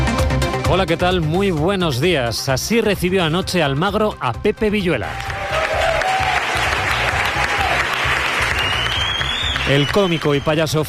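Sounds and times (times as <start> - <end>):
speech: 0.7 - 5.3, 9.7 - 10.8
audience ovation applause: 5.1 - 10.8.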